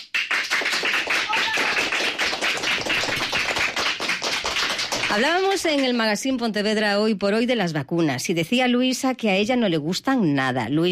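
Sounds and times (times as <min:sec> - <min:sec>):
schoolchildren clapping in studio: 0:00.0 - 0:06.0
speech: 0:05.1 - 0:10.9.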